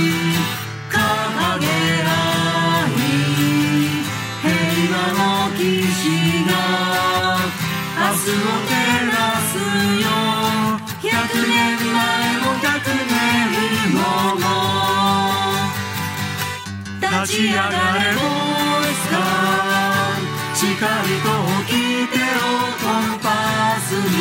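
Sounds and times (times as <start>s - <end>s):
person singing briefly: 0.0s - 16.0s, 17.0s - 24.1s
guitar: 0.0s - 24.1s.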